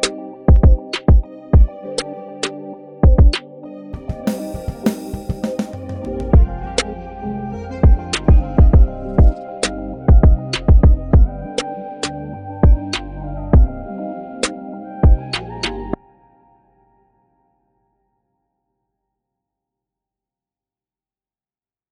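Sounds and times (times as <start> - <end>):
music beat: 0.0 - 1.7, 3.0 - 3.4, 4.0 - 11.6, 12.6 - 13.0, 13.6 - 13.8, 15.0 - 15.8.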